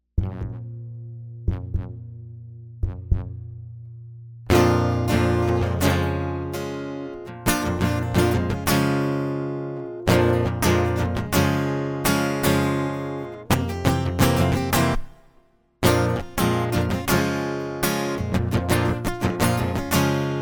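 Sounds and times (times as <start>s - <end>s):
acoustic music: 4.5s - 20.4s.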